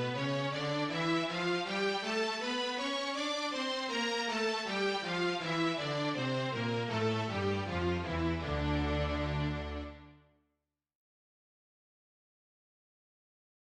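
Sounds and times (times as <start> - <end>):
minor scales being played: 0.0 - 10.1.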